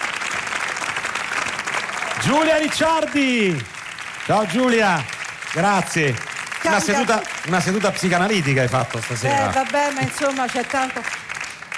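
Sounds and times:
audience applause: 0.0 - 11.7
speech: 2.2 - 3.7, 4.3 - 11.2.

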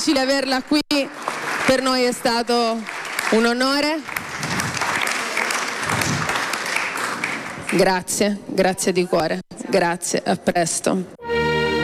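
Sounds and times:
speech: 0.0 - 4.6, 7.7 - 11.2
audience applause: 1.0 - 7.8.

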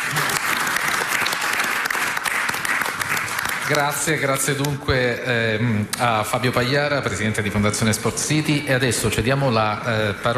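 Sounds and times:
applause from a sizable audience: 0.0 - 4.4
speech: 3.7 - 10.3.

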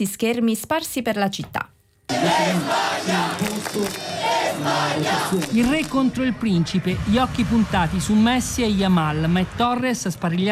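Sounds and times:
speech: 0.0 - 10.5
football fans celebrating in street: 2.1 - 9.8.

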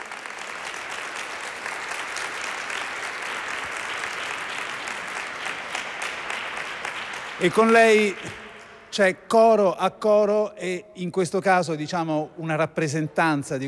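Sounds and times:
audience applause: 0.0 - 8.6
speech: 7.4 - 13.6.

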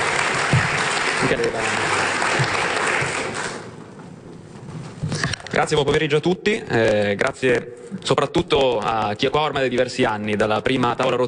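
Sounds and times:
crowd applauding: 0.0 - 3.9
speech: 1.3 - 3.0, 5.6 - 11.2.

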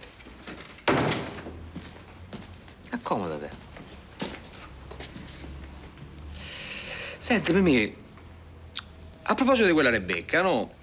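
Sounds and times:
door closing thud: 0.8 - 1.6
speech: 3.1 - 3.6, 7.3 - 8.0, 9.3 - 10.8.

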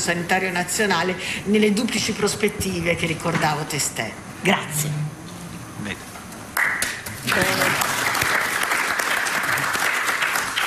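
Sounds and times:
speech: 0.0 - 5.2, 5.8 - 6.1, 7.3 - 7.7
audience applause: 6.6 - 10.6.

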